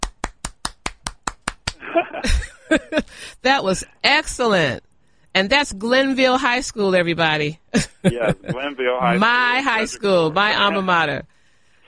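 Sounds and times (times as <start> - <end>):
audience clapping: 0.0 - 1.8
laughter: 1.7 - 3.8, 7.8 - 10.9
speech: 2.0 - 11.3.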